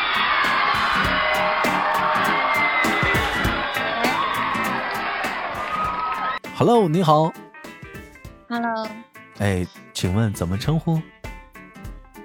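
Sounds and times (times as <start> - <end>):
crowd applause: 0.0 - 6.4
speech: 6.6 - 7.4, 8.5 - 11.1.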